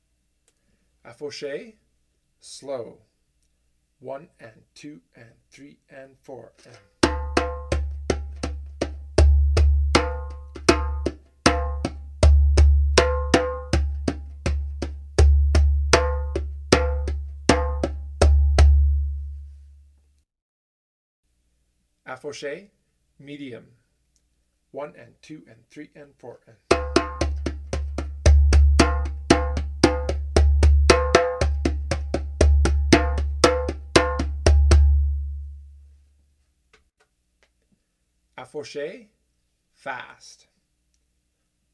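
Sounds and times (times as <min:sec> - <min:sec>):
afoxe music: 0:07.0 - 0:19.6, 0:26.7 - 0:35.8.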